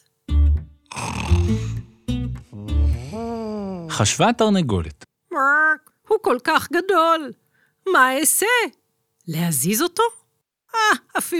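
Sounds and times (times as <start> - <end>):
voice imitating an elephant snoring: 0.9 - 4.0
speech: 4.0 - 5.5, 6.2 - 11.3.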